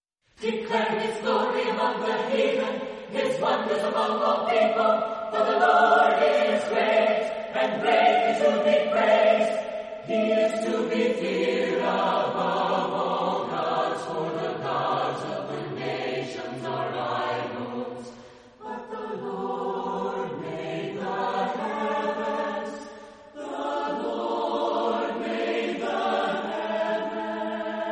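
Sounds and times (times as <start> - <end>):
a cappella chorale singing: 0.3 - 27.8.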